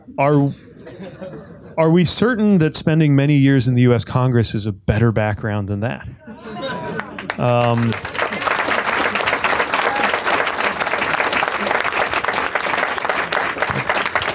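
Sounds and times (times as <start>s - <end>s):
speech: 0.1s - 6.6s, 7.4s - 8.1s
laughter: 0.6s - 1.8s, 6.2s - 12.1s
mild audience applause: 6.5s - 14.3s.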